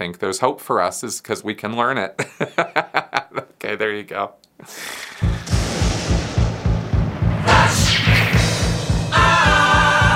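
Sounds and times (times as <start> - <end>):
speech: 0.0 - 3.0, 3.6 - 5.0
thunder sound effect: 5.2 - 9.1.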